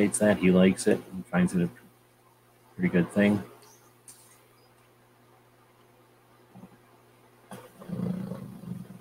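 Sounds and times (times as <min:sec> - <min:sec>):
speech: 0:00.0 - 0:01.8, 0:02.8 - 0:03.5
faint steady hum: 0:00.0 - 0:08.9
dog snoring and snorting: 0:07.5 - 0:08.9.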